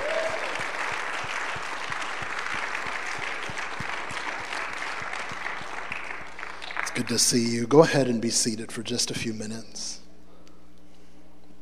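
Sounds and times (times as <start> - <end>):
audience hand clapping: 0.0 - 7.5
speech: 7.0 - 10.0.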